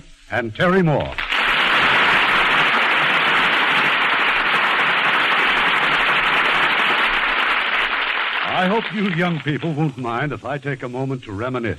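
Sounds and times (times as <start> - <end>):
speech: 0.3 - 1.2, 8.6 - 11.7
audience applause: 1.2 - 9.9.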